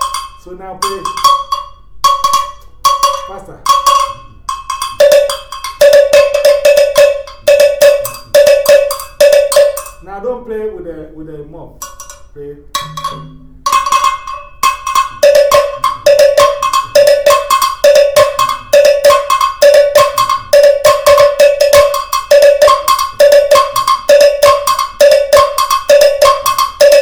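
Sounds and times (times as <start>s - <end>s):
two bells of different pitch ringing alternately: 0.0s - 10.1s, 11.8s - 27.0s
speech: 0.4s - 1.4s, 3.3s - 4.4s, 10.1s - 11.8s, 12.4s - 13.7s.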